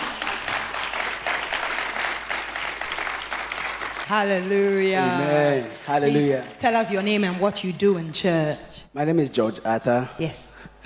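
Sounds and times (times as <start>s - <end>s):
church congregation applauding to welcome a speaker: 0.0s - 7.2s
speech: 4.1s - 10.8s.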